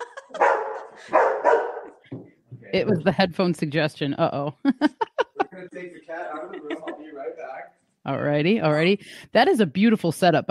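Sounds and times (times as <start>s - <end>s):
laughter: 0.0s - 1.3s, 2.8s - 3.4s, 4.6s - 7.6s
dog barking: 0.3s - 2.0s
dog yipping: 0.4s - 1.9s
speech: 2.7s - 5.0s, 5.7s - 10.5s.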